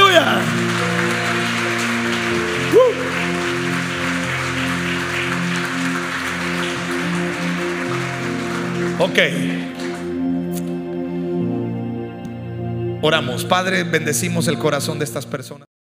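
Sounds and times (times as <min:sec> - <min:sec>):
audience applause: 0:00.0 - 0:10.2
sustained low musical chords: 0:00.0 - 0:15.4
person crying out: 0:02.7 - 0:03.1
speech: 0:09.2 - 0:09.8, 0:13.0 - 0:15.6.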